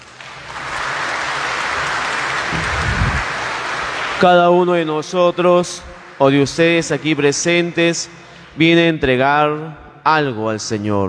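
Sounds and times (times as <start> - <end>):
applause: 0.0 - 8.5
speech: 4.2 - 11.0.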